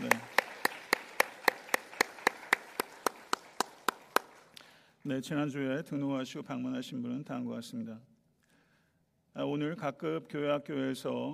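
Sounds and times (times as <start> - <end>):
group clapping in rhythm: 0.0 - 4.8
speech: 5.0 - 8.1, 9.4 - 11.3.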